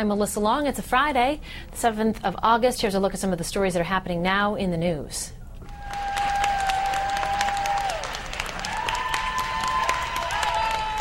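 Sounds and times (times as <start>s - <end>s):
speech: 0.0s - 5.4s
crowd in Los Angeles cheering and applauding: 5.6s - 10.9s.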